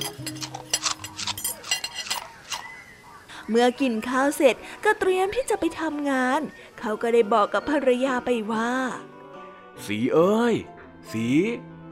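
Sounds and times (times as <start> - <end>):
spoons and forks clinking and scraping against plates: 0.0 - 2.6
speech: 3.5 - 9.2, 9.8 - 11.7.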